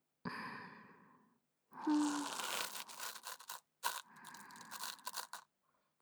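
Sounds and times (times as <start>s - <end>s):
soft brush brushing ears ASMR before sleep: 1.9s - 5.4s.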